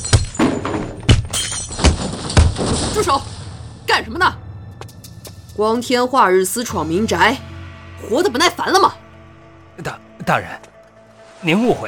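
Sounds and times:
clattering debris: 0.0 - 3.8
heavy objects being smashed and knocked over: 0.0 - 3.8
speech: 3.0 - 4.4, 5.6 - 9.0, 9.8 - 10.7, 11.4 - 11.8.

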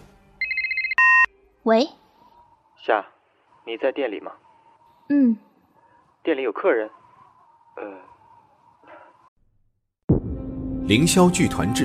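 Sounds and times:
telephone ringing: 0.4 - 1.3
speech: 1.6 - 2.0, 2.8 - 4.4, 5.1 - 5.5, 6.2 - 7.0, 7.8 - 8.1, 10.9 - 11.8.

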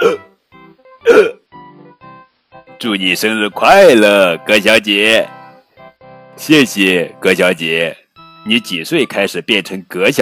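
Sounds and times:
hiccups imitated by a voice: 0.0 - 0.4, 1.0 - 1.5
speech: 2.8 - 5.4, 6.4 - 10.2.

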